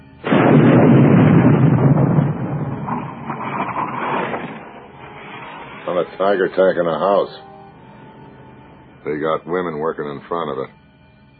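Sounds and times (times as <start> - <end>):
88 mm artillery gun firing with a deep boom: 0.2 - 5.6
speech: 6.2 - 7.5, 9.0 - 10.8.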